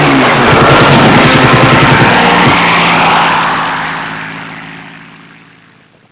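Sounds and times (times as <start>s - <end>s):
strafing gunfire: 0.1s - 4.8s.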